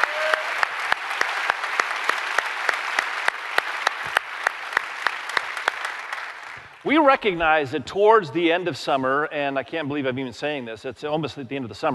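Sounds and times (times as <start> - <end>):
audience round of applause: 0.0 - 6.8
speech: 6.8 - 11.9.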